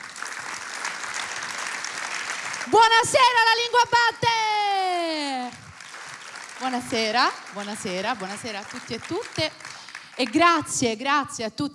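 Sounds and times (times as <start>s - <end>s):
audience applause: 0.0s - 2.8s, 5.4s - 10.4s
speech: 2.6s - 4.6s, 6.6s - 11.7s.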